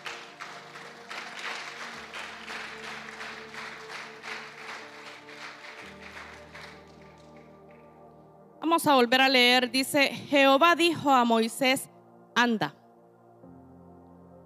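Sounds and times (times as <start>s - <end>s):
audience applause: 0.0s - 7.6s
speech: 8.6s - 12.8s.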